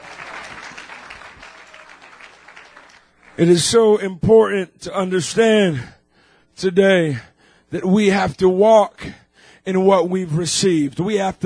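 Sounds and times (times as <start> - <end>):
people clapping hands: 0.0 - 3.5
speech: 3.4 - 6.0, 6.6 - 11.4.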